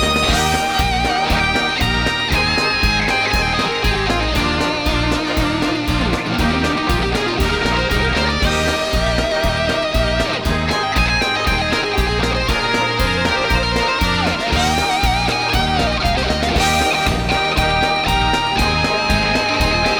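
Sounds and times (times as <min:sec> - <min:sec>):
victory song: 0:00.0 - 0:19.9.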